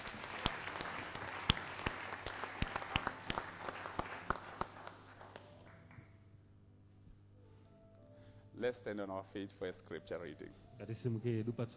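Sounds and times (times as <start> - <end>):
audience clapping: 0.0 - 6.1
speech: 8.6 - 11.7.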